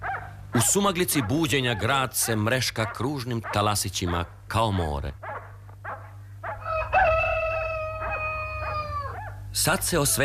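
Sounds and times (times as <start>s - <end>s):
steady low hum: 0.0s - 10.2s
speech: 0.6s - 5.3s, 9.6s - 10.2s
rooster crowing at dawn: 6.4s - 9.4s.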